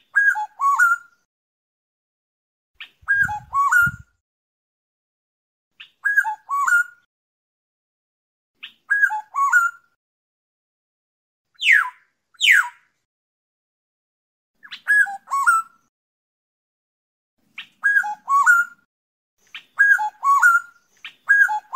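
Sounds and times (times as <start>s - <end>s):
black-naped oriole fluting whistles: 0.1s - 1.1s, 3.0s - 4.1s, 5.8s - 7.1s, 8.6s - 9.8s, 11.6s - 12.8s, 14.6s - 15.8s, 17.8s - 18.9s, 19.6s - 21.7s.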